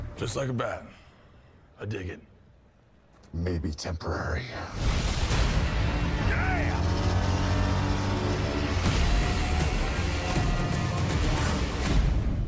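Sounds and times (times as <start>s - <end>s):
speech: 0.2s - 1.0s, 1.8s - 2.3s, 3.3s - 5.3s
car engine revving in the Justice League movie trailer: 5.1s - 12.3s.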